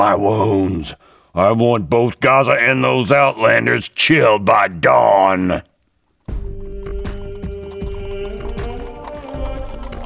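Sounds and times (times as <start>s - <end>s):
speech: 0.0s - 5.7s
horses ridden at night through the desert: 6.3s - 10.0s.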